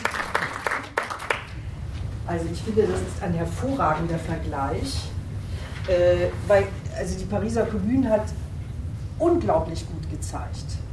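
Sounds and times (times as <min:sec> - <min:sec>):
applause: 0:00.0 - 0:01.6
speech: 0:02.3 - 0:05.2, 0:05.8 - 0:08.4, 0:09.2 - 0:10.8.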